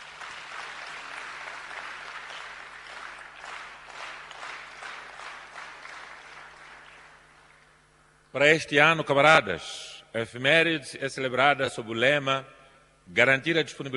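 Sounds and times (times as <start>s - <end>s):
crowd applause: 0.0s - 7.7s
speech: 8.4s - 13.9s.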